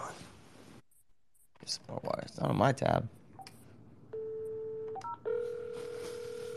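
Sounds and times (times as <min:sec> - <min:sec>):
speech: 0:01.7 - 0:03.2
telephone dial tone: 0:04.2 - 0:06.5.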